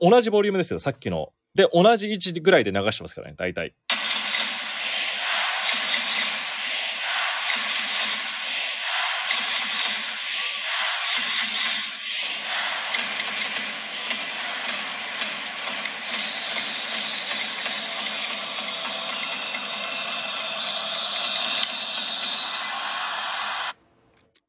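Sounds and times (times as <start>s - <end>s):
speech: 0.0s - 4.0s
baseball stadium crowd chanting Yanagita's name: 4.7s - 23.7s.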